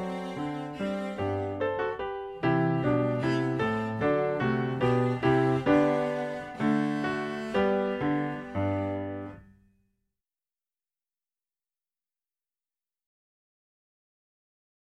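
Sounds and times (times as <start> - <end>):
cello: 0.0 - 9.6
piano: 0.0 - 9.8.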